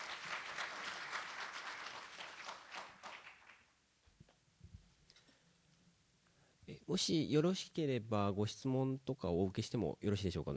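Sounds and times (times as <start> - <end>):
audience applause: 0.0 - 3.7
speech: 6.9 - 10.5.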